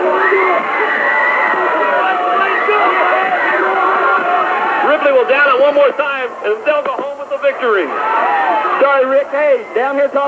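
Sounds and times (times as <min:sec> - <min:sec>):
crowd cheering on the sidelines: 0:00.0 - 0:10.2
speech: 0:05.7 - 0:10.2.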